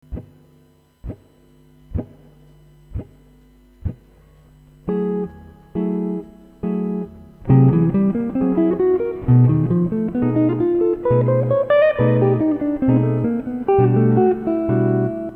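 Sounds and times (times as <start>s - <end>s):
musical lick: 4.9s - 15.3s.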